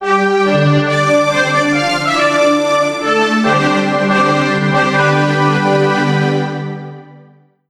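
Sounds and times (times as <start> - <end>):
jingle: 1.1 - 7.3.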